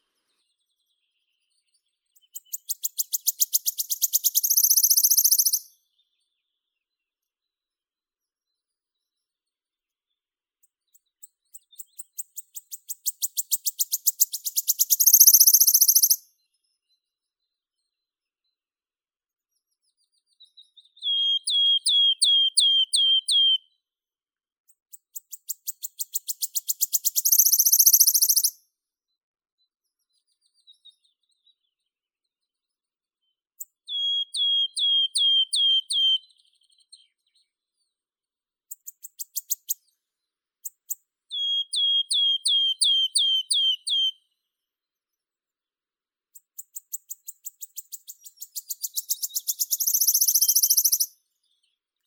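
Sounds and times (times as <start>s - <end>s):
Phylloscopus sibilatrix wood warbler singing: 0.0s - 6.2s, 10.9s - 16.2s, 20.5s - 23.6s, 25.2s - 28.6s, 33.9s - 37.4s, 41.3s - 44.2s, 46.6s - 51.8s.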